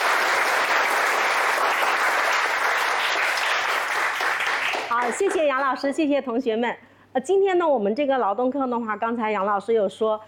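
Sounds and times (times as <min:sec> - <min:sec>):
classroom applause: 0:00.0 - 0:05.8
speech: 0:05.0 - 0:10.2.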